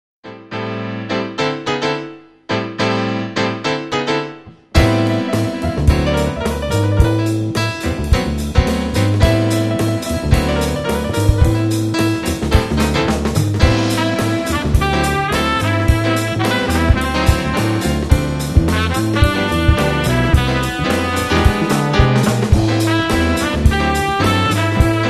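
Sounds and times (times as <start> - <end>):
funky jazz: 2.6 - 25.0.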